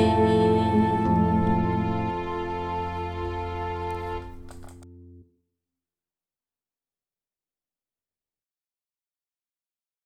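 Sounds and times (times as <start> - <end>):
person singing: 0.0 - 3.0
music: 0.0 - 5.4.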